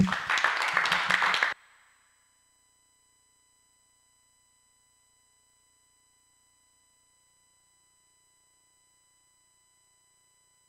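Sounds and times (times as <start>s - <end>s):
church congregation applauding a guest speaker: 0.0s - 1.6s.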